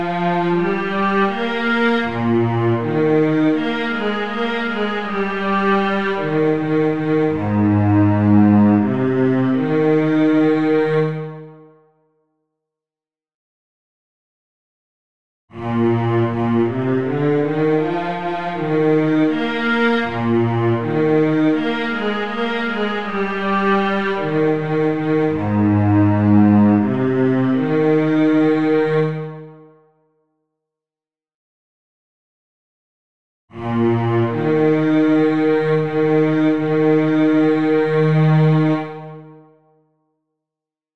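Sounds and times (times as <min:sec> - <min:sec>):
bass: 0:00.0 - 0:11.1, 0:15.6 - 0:29.1, 0:33.5 - 0:38.8.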